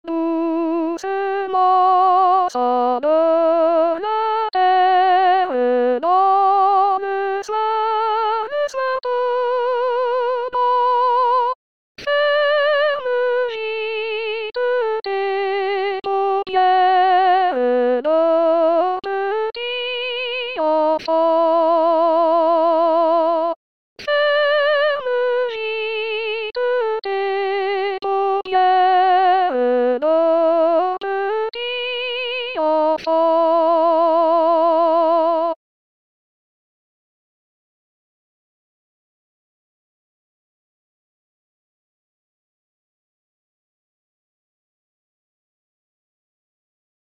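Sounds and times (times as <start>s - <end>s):
soprano singing a lullaby: 0.0s - 35.6s.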